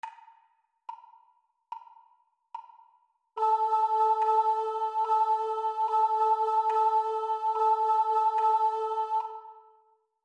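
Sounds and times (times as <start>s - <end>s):
high rhythm pattern: 3.4s - 9.6s.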